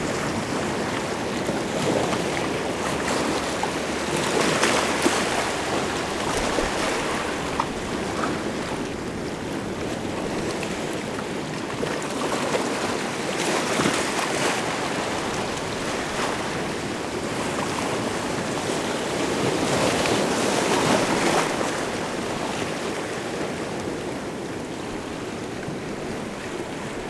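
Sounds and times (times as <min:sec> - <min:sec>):
shore waves: 0:00.0 - 0:27.0.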